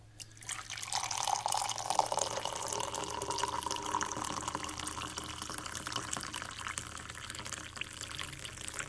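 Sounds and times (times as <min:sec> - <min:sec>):
coffee being poured into a cup: 0:00.3 - 0:08.8.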